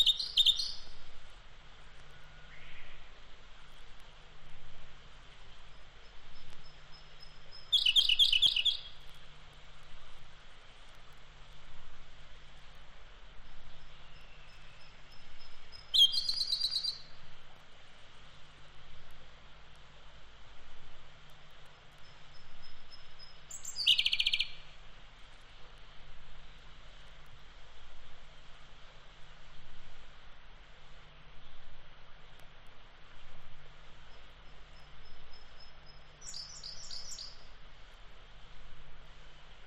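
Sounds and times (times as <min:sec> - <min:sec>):
wild birds singing on Mount Takao: 0:00.0 - 0:01.0, 0:01.9 - 0:03.2, 0:05.6 - 0:09.1, 0:13.4 - 0:17.2, 0:21.6 - 0:24.7, 0:34.0 - 0:37.5.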